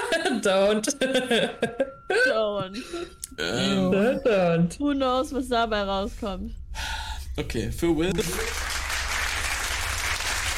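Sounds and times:
speech: 0.2s - 8.7s
crowd applause: 8.2s - 10.5s.

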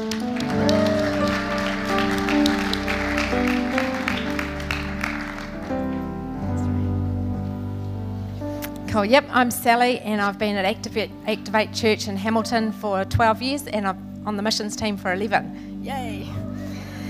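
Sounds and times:
audience clapping to welcome a speaker at a church gathering: 0.0s - 6.4s
music at a church gathering: 0.0s - 17.0s
speech: 9.0s - 16.4s.

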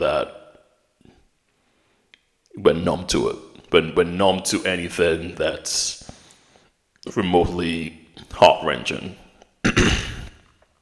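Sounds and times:
speech: 0.0s - 0.4s, 2.6s - 6.1s, 7.0s - 9.9s
person coughing: 9.6s - 10.5s.

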